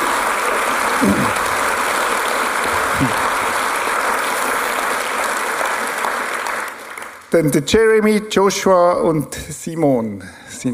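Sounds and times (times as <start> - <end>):
audience applause: 0.0 - 7.3
speech: 1.0 - 1.4, 7.3 - 10.7
laughter: 2.8 - 3.4.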